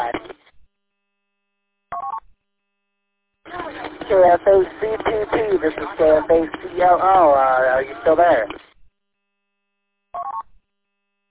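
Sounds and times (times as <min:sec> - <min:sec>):
static: 0:00.0 - 0:00.6, 0:03.5 - 0:08.8
speech: 0:04.1 - 0:08.6
telephone dialing tones: 0:10.2 - 0:10.4.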